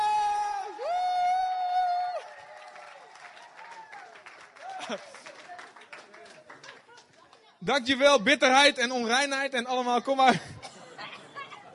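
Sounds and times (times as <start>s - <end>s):
audience cheering and applause: 0.0s - 7.0s
speech: 4.9s - 5.3s, 7.6s - 10.5s.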